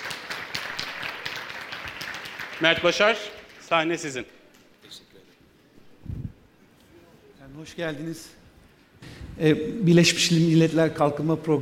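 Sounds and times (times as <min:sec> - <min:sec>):
audience applause: 0:00.0 - 0:04.2
speech: 0:02.6 - 0:05.0, 0:07.6 - 0:08.4, 0:09.4 - 0:11.6.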